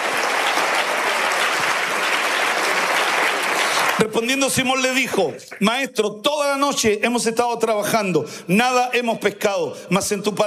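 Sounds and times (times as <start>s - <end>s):
audience applauding loudly: 0.0s - 4.5s
speech: 4.1s - 10.4s.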